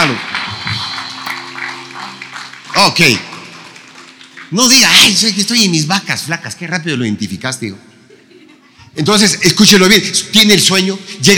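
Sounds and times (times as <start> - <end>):
audience applauding: 0.0 - 5.9
speech: 2.8 - 3.3, 4.5 - 7.9, 9.0 - 11.3.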